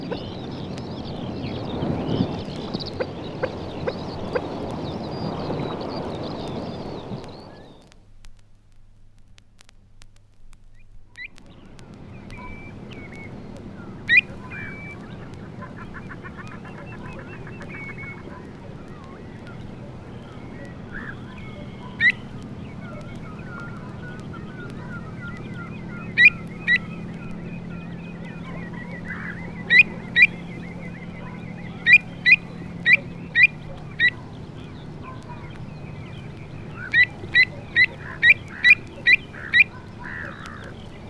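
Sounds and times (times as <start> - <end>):
Säbelschnäbler alarm calls at its incubated nest: 0.0 - 7.8, 10.7 - 41.0.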